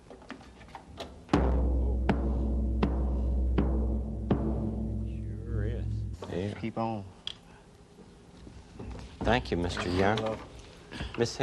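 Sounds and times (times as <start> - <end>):
deep-sounding drum being hit: 1.4 - 6.2
speech: 6.5 - 7.2, 9.2 - 11.4.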